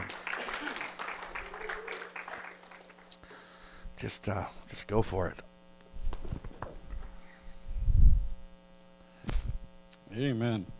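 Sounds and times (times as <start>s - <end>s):
church congregation giving a welcome clap for a guest speaker: 0.0s - 3.2s
low steady hum: 0.0s - 10.7s
speech: 4.0s - 5.5s, 10.2s - 10.7s.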